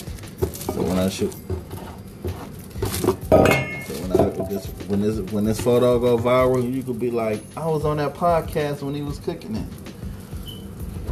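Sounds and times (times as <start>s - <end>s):
dishes and cutlery clinking as an omelet is plated: 0.0s - 6.7s
speech: 0.8s - 1.6s, 4.0s - 9.9s.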